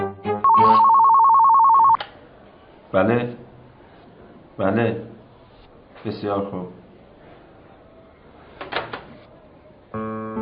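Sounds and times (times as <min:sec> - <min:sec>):
telephone ringing with electronic trill: 0:00.4 - 0:02.0
speech: 0:02.9 - 0:03.4, 0:04.6 - 0:05.1, 0:06.0 - 0:06.8.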